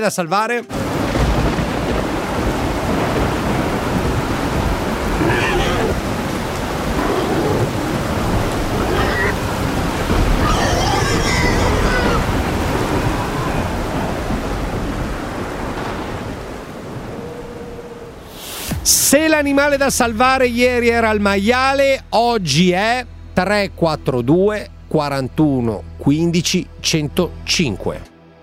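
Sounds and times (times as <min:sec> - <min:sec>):
speech: 0:00.0 - 0:01.1, 0:19.4 - 0:28.1
torrential rain in a thunderstorm: 0:00.7 - 0:20.0
rolling thunder: 0:00.8 - 0:19.2.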